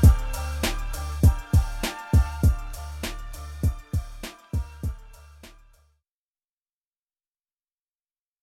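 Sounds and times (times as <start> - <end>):
a cappella singing: 0.0 - 5.7.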